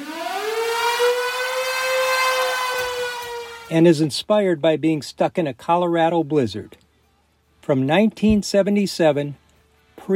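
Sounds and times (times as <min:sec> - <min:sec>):
storm siren wailing on a 1977 live rock recording: 0:00.0 - 0:03.8
speech: 0:03.7 - 0:06.8, 0:07.7 - 0:09.4.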